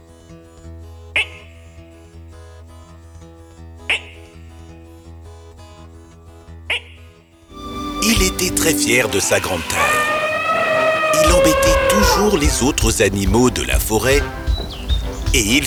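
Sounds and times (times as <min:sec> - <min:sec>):
frogs croaking: 0:03.9 - 0:04.4, 0:06.7 - 0:12.6
speech: 0:08.4 - 0:10.1, 0:11.2 - 0:14.4, 0:15.3 - 0:15.6.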